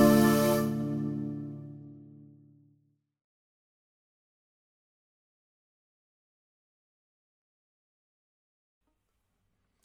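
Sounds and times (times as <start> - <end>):
instrumental backing track without melody: 0.0 - 2.3.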